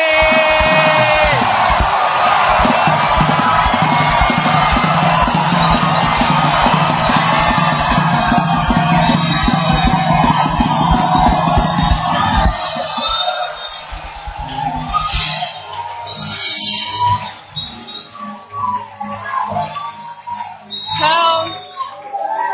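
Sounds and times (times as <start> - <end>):
church congregation clapping at a prayer service: 0.0 - 14.8
church congregation shouting praise and whooping: 0.0 - 17.4, 18.2 - 22.5.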